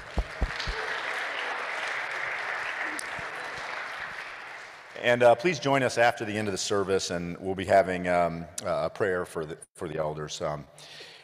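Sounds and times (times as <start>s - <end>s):
audience applause: 0.0s - 5.0s
speech: 5.0s - 11.1s.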